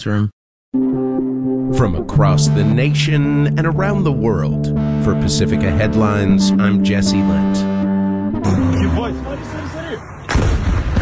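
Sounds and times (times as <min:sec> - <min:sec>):
speech: 0:00.0 - 0:07.7, 0:08.4 - 0:09.6
people's voices: 0:01.8 - 0:07.6, 0:08.4 - 0:10.1
drone explosion boom: 0:08.3 - 0:09.3, 0:10.0 - 0:10.9
sharp blast: 0:08.3 - 0:10.9.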